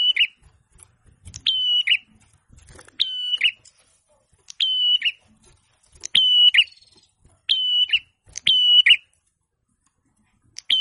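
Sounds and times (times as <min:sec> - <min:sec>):
prinia song of high flat whistles with burry endings: 0:00.0 - 0:00.4, 0:01.4 - 0:02.1, 0:03.0 - 0:03.7, 0:04.5 - 0:05.2, 0:06.0 - 0:09.1, 0:10.6 - 0:10.7.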